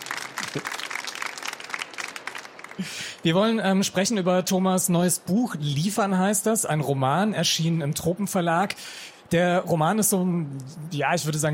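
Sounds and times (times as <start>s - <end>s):
audience applause: 0.0s - 3.2s
speech: 0.5s - 0.8s, 2.8s - 11.5s.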